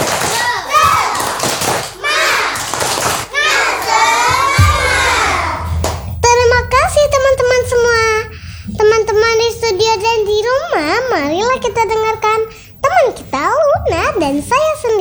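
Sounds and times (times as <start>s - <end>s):
children shouting a chant in a studio: 0.0s - 5.9s
children's rhythmic claps in a clapping chant: 0.0s - 15.0s.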